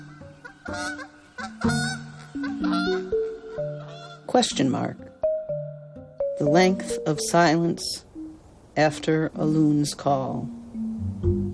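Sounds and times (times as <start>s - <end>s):
wild goose honking: 0.0s - 4.6s
speech: 0.7s - 1.8s, 4.4s - 5.1s, 6.4s - 8.1s, 8.8s - 10.6s.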